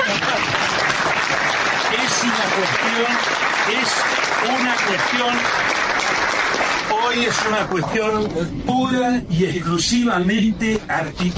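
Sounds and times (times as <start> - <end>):
audience applause: 0.0 - 7.6
speech: 2.5 - 5.8, 7.0 - 11.3.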